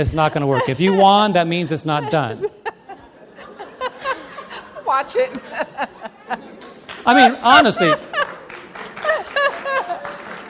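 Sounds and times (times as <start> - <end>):
speech: 0.0 - 2.6, 4.9 - 6.4, 7.0 - 8.1
laughter: 0.0 - 10.4
women in an audience clapping: 6.6 - 10.4.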